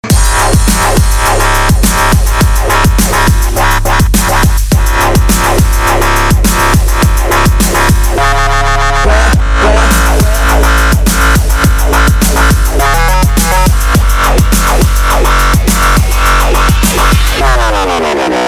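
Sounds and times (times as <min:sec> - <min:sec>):
dubstep music: 0:00.0 - 0:18.4.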